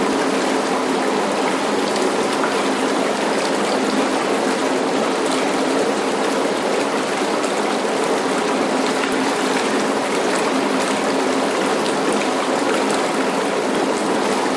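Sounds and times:
household bath spa running with long bubbles in water: 0.0 - 14.5.

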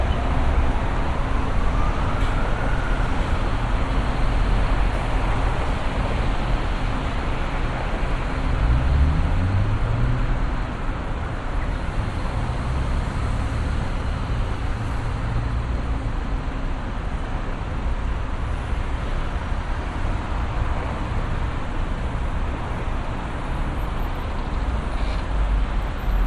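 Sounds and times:
busy city vehicle traffic in Brisbane North Quay: 0.0 - 26.2
distant siren in Brisbane North Quay: 1.1 - 4.0.

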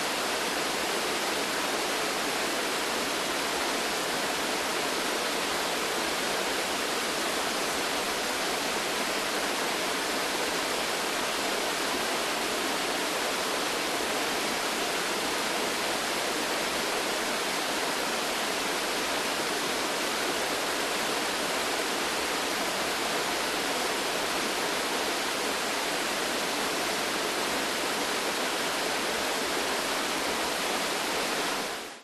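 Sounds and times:
waterfall in a forest: 0.0 - 32.0.

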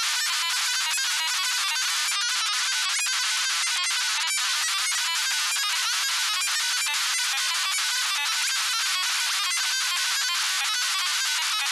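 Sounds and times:
science fiction lo-fi data stream loop: 0.0 - 11.6.

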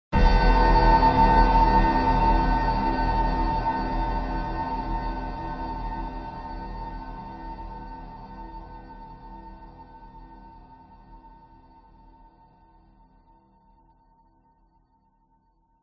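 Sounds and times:
dark eerie horror piano hit stab: 0.2 - 8.7.

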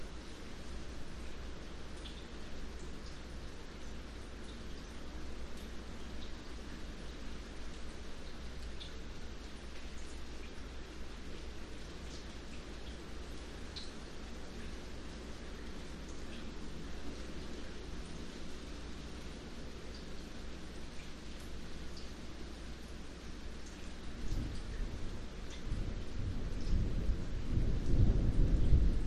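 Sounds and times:
very light rain drips: 0.0 - 29.0
distant thunder rumbles: 25.9 - 29.0.

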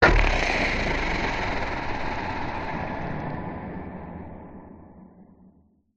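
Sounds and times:
sudden horror monster growl: 0.0 - 4.4.

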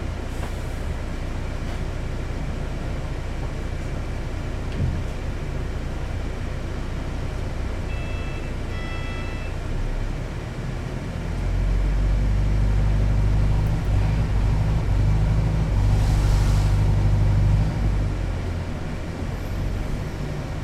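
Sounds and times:
bus moving heard onboard upstairs in London city centre: 0.0 - 20.6.

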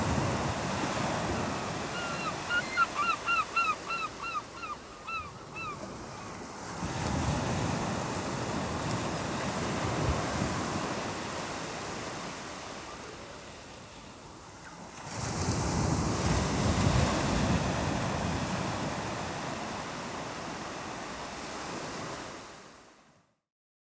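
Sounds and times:
waves on the English coast: 0.0 - 23.3
distant seagulls on the English coast: 1.1 - 6.4.

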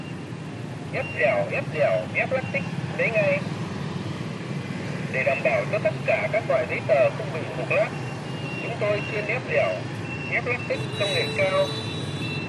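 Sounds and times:
busy city street traffic in Buon Ma Thuot Vietnam: 0.0 - 12.4
street vendor loudspeaker close by in Buon Ma Thuot Vietnam: 0.9 - 3.5, 5.1 - 8.0, 8.6 - 11.9.

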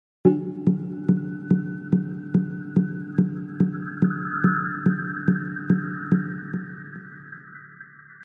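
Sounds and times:
ethnic djembe drum hits at 120 bpm, atmospheric: 0.3 - 6.3.

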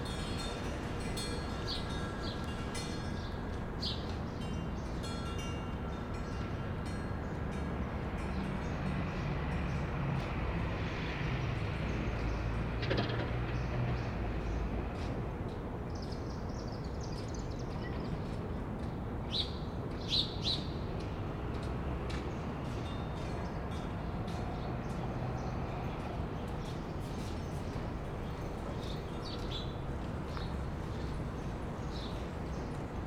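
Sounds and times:
wind chimes on a quiet street: 0.0 - 10.7, 22.4 - 33.0
distant traffic: 0.0 - 33.0.

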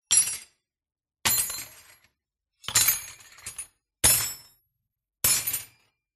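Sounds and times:
wrench tools dropped onto a metallic surface: 1.3 - 4.5, 5.2 - 6.0.

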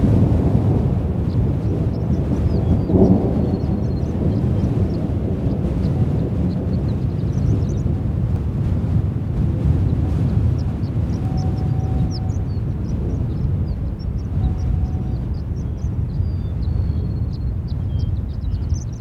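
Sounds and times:
distant thunder: 0.0 - 18.9
strong wind gusts in a field: 0.0 - 18.9.

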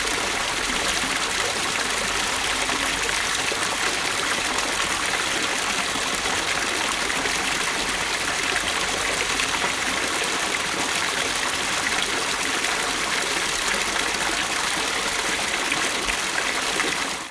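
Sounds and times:
storm water pouring from a pipe onto a beach: 0.0 - 17.2.

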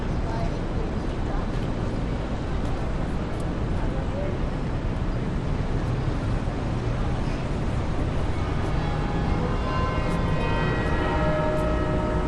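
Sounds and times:
people in a city square in Brisbane Australia: 0.0 - 12.2
clock tower striking in a Brisbane city square: 7.8 - 12.2.

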